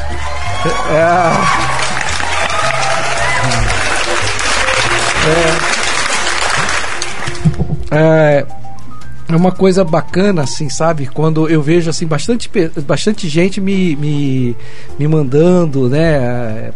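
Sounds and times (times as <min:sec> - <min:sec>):
applause: 0:00.1 - 0:07.7
speech: 0:00.6 - 0:01.8, 0:05.2 - 0:05.8, 0:07.4 - 0:08.6, 0:09.3 - 0:16.7.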